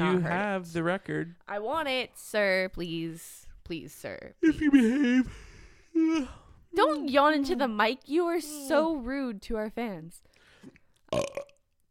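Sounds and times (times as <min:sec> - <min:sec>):
speech: 0:00.1 - 0:11.5
loud burp: 0:11.1 - 0:11.6.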